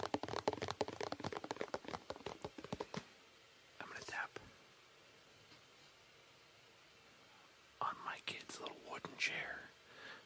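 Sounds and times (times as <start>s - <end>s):
rapid crisp fingertip tapping on a canister: 0.0s - 3.0s
soft breathy whisper-like sound: 3.8s - 4.6s, 7.3s - 10.2s
speech: 8.1s - 9.8s.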